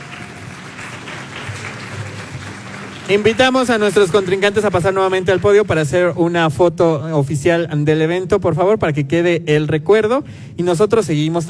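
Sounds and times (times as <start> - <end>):
audience applause: 0.0 - 6.1
speech: 3.1 - 11.4.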